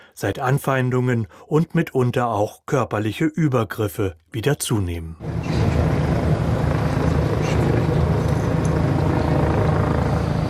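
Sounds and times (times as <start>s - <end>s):
speech: 0.2s - 5.5s
police helicopter circling over Berlin's Tiergarten park: 5.2s - 10.4s.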